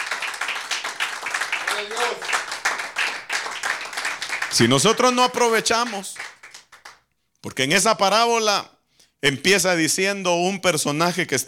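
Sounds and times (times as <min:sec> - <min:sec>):
audience clapping hands: 0:00.0 - 0:07.1
speech: 0:01.8 - 0:02.5, 0:04.5 - 0:06.2, 0:07.5 - 0:11.4.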